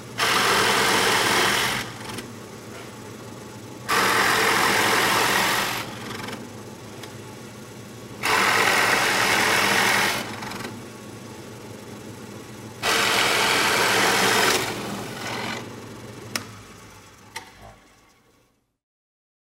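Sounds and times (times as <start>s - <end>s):
drill press: 0.0s - 2.9s, 3.8s - 7.2s, 8.2s - 10.8s, 12.8s - 17.7s.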